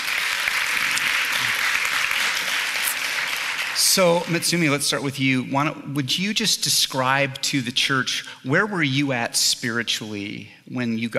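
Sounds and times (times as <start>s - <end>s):
crowd applause: 0.0s - 4.6s
speech: 4.0s - 11.1s.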